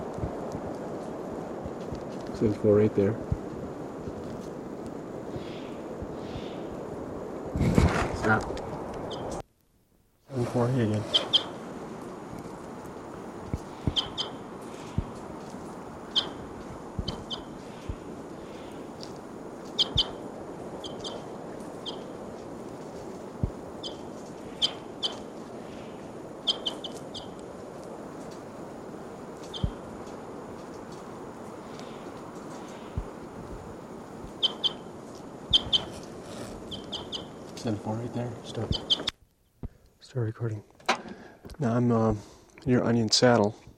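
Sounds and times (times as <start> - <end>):
hiss: 0.0 - 43.7
speech: 2.4 - 3.4, 8.3 - 8.6, 10.5 - 11.3, 38.1 - 38.8, 40.4 - 40.7, 41.6 - 43.6
bird chirping while being handled: 9.0 - 9.4, 11.0 - 11.6, 13.6 - 15.1, 16.0 - 16.4, 17.0 - 18.9, 19.7 - 20.2, 20.8 - 22.1, 23.8 - 27.4, 29.4 - 29.8, 34.3 - 34.9, 35.5 - 37.6, 38.4 - 39.1.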